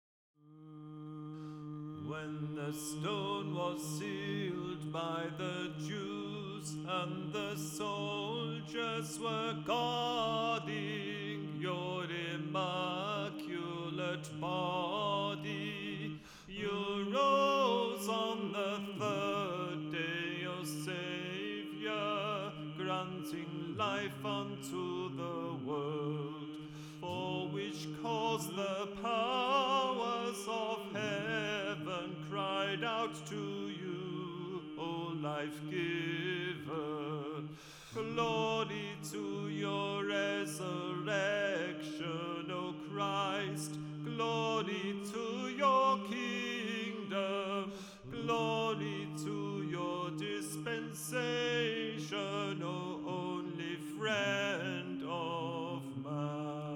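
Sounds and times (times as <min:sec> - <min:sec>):
resurrectional dismissal hymn in first mode: 0:00.4 - 0:56.7.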